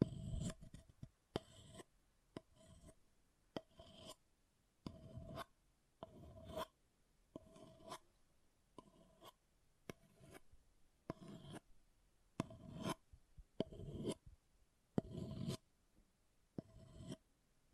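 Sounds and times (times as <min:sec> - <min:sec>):
object scratching: 0:00.0 - 0:01.9, 0:02.6 - 0:03.0, 0:04.8 - 0:06.8, 0:08.8 - 0:10.5, 0:11.1 - 0:11.7, 0:12.4 - 0:13.0, 0:13.6 - 0:14.2, 0:15.0 - 0:15.6, 0:16.6 - 0:17.2.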